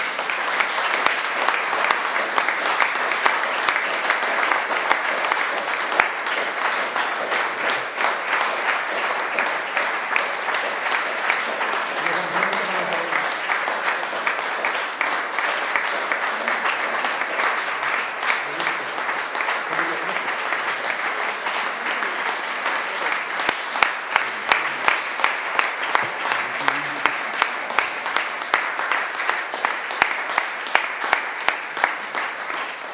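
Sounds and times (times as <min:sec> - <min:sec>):
audience applause: 0:00.0 - 0:32.9
faint voice murmuring: 0:11.9 - 0:13.4, 0:18.3 - 0:20.5, 0:25.9 - 0:27.5.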